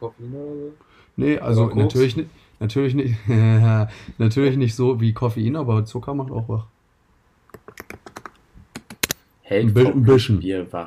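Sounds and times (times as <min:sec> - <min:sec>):
speech: 0:00.0 - 0:06.8, 0:07.7 - 0:08.1, 0:09.5 - 0:10.8
typing on a computer keyboard: 0:07.5 - 0:09.0.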